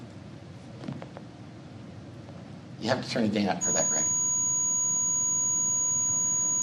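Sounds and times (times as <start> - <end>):
speech: 2.8 - 4.2
clipped high-pitched sine test tone: 3.6 - 6.6.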